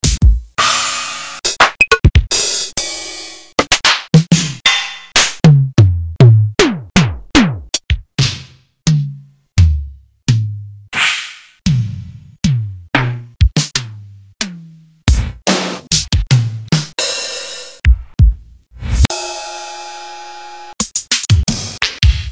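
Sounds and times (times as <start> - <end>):
E-mu Drumulator drum machine: 0.0 - 0.9, 1.5 - 19.2, 20.8 - 22.3.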